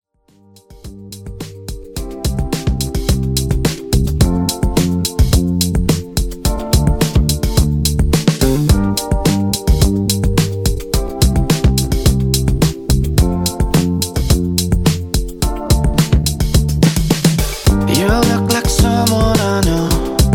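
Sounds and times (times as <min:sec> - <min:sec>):
drum beat at 107 BPM: 0:00.7 - 0:20.3.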